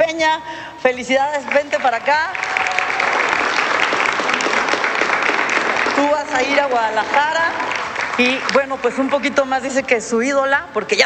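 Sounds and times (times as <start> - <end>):
speech: 0.2 - 2.8, 6.0 - 11.0
audience applause: 1.5 - 9.5.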